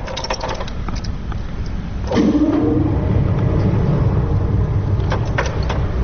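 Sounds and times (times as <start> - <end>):
air pushed through pipe organ: 0.0 - 6.0
pipe organ blower motor starting: 2.0 - 6.0.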